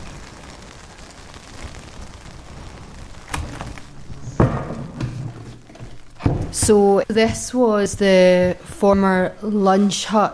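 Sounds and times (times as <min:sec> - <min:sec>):
steady rain: 0:00.0 - 0:09.4
dull thumps: 0:04.3 - 0:09.4
speech: 0:06.6 - 0:10.3.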